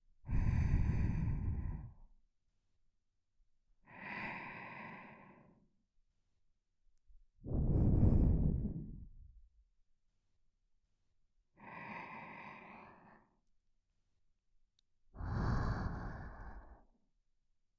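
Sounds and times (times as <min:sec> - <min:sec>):
person breathing in sleep: 0:00.3 - 0:02.1, 0:03.9 - 0:05.6, 0:07.5 - 0:09.2, 0:11.6 - 0:13.4, 0:15.2 - 0:16.9.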